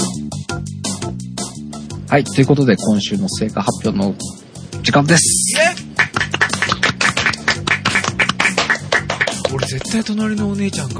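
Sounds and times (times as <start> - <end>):
speech: 2.1 - 5.8, 9.7 - 10.9
crowd clapping: 5.5 - 10.0.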